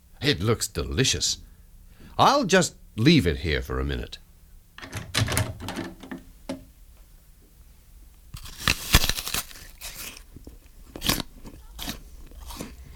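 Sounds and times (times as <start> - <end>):
speech: 0.2 - 1.5, 2.2 - 4.2
crunching bites into an apple: 8.3 - 12.9
chewing apple: 9.8 - 12.9.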